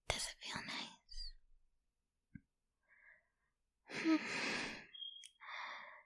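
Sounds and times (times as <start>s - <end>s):
slow breathing: 3.9s - 6.0s.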